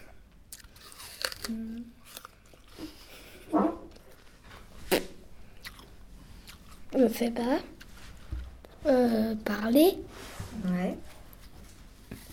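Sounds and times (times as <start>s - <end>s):
person chewing food with crunchy bites: 0.5s - 4.2s, 4.9s - 6.9s
speech: 7.0s - 7.7s, 8.8s - 11.1s.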